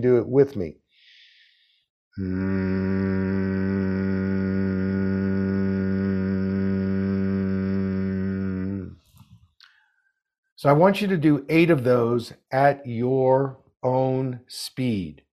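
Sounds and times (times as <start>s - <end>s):
speech: 0.0s - 0.8s, 2.2s - 3.9s, 10.6s - 15.2s
person humming on the exhale: 2.2s - 9.0s.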